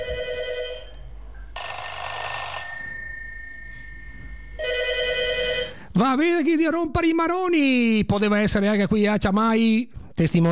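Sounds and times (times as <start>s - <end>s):
1970s SIP telephone bell ringing: 0.0s - 1.0s, 1.6s - 5.8s
speech: 6.0s - 10.5s.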